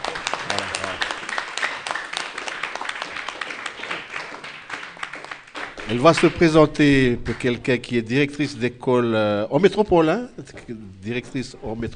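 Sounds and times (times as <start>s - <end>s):
pupils applauding: 0.0s - 6.4s
speech: 5.9s - 11.9s.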